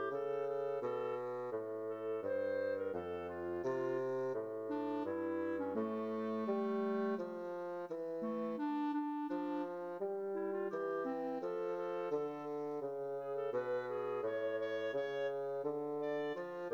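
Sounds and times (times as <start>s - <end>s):
clarinet: 0.0s - 16.7s.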